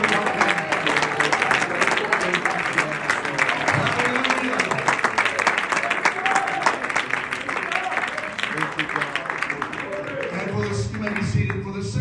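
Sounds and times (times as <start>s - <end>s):
audience clapping hands in praise: 0.0s - 11.9s.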